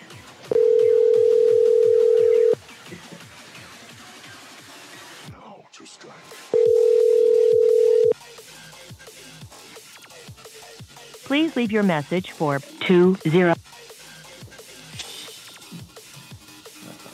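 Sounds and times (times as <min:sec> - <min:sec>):
outgoing call to a cell phone ringing back: 0:00.5 - 0:02.6, 0:06.6 - 0:08.2
speech: 0:11.6 - 0:13.6.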